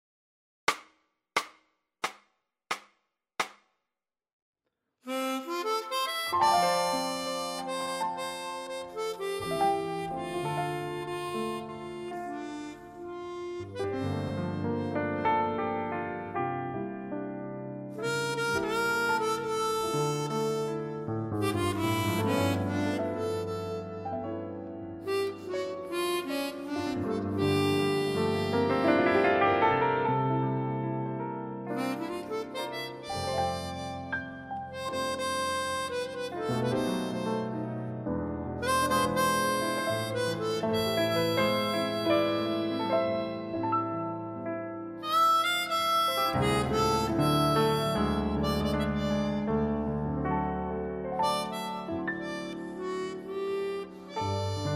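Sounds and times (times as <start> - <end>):
harmonica in F: 5.0 - 16.3, 17.9 - 29.6, 31.7 - 50.1, 51.1 - 54.7
piano in F: 5.1 - 54.7.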